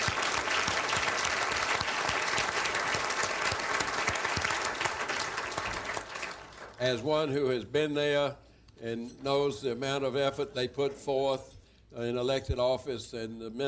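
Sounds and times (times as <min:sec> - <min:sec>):
audience applause: 0:00.0 - 0:06.8
speech: 0:06.8 - 0:13.6.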